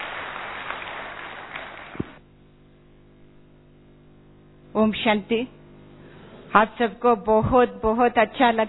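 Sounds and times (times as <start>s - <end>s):
audience applause: 0.0s - 2.2s
speech: 4.8s - 5.6s, 6.5s - 8.6s.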